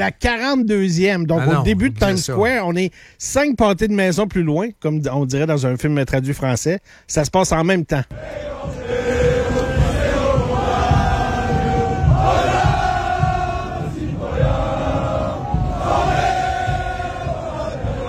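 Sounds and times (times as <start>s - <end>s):
speech: 0.0s - 8.7s
large crowd singing in Times Square: 8.1s - 18.0s.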